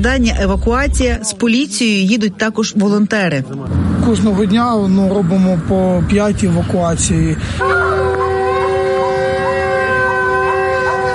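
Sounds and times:
speech: 0:00.0 - 0:08.1
continuous air raid siren wailing in Kherson: 0:07.5 - 0:11.1.

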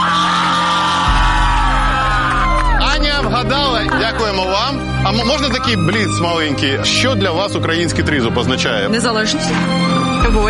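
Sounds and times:
audience at a Ukrainian quiz event applauding and cheering: 0:00.0 - 0:06.8
speech: 0:03.4 - 0:10.4.

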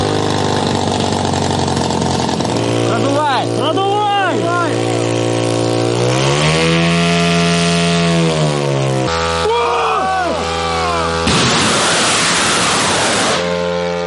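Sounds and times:
drone propellers spinning up at launch: 0:00.0 - 0:14.0
broad rushing roar: 0:09.4 - 0:14.0.

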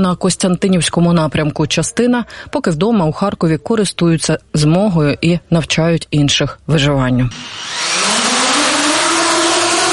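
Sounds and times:
speech: 0:00.0 - 0:08.0
FPV drone buzzing in flight: 0:07.3 - 0:09.9.

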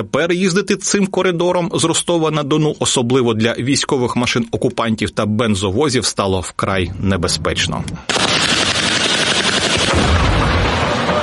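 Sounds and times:
speech: 0:00.0 - 0:08.6
harsh crackling roar: 0:08.1 - 0:11.2
munition strike explosion boom: 0:09.8 - 0:11.2.

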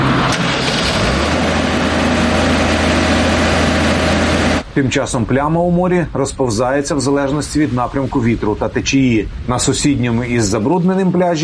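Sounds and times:
pump pumping sewage past damaged collector section: 0:00.0 - 0:04.6
speech: 0:04.8 - 0:11.4.

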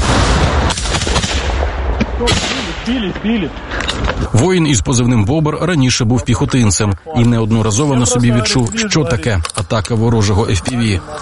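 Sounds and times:
soldiers' gunshots: 0:00.0 - 0:03.2
speech: 0:02.2 - 0:11.2.

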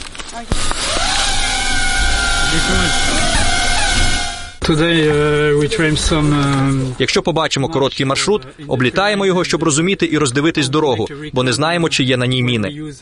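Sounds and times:
speech: 0:00.4 - 0:00.8, 0:02.5 - 0:03.2, 0:04.7 - 0:13.0
drone launched into the sky: 0:00.5 - 0:04.6.

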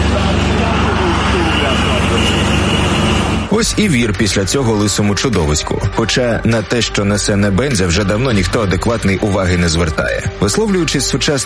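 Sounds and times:
traffic jam at a border crossing: 0:00.0 - 0:04.5
speech: 0:03.6 - 0:11.4.

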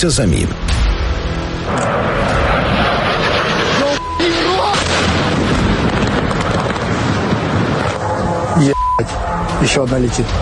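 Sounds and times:
speech: 0:00.0 - 0:00.7, 0:01.7 - 0:02.2, 0:08.6 - 0:10.4
missile or drone passing overhead: 0:00.5 - 0:10.4
faint high whine: 0:01.7 - 0:04.7.

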